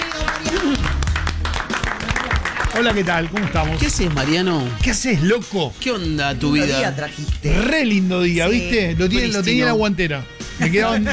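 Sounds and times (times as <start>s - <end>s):
audience applause: 0.0s - 4.9s
speech: 2.8s - 11.1s.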